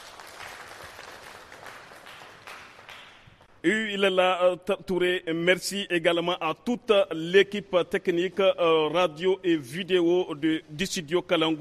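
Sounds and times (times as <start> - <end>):
crowd applause: 0.0 - 3.2
speech: 3.6 - 11.6.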